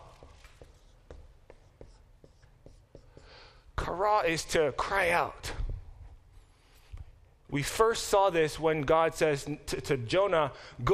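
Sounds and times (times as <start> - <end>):
writing on a board during a lesson on Hebrew words: 0.0 - 3.5
speech: 3.8 - 5.6, 7.5 - 10.9.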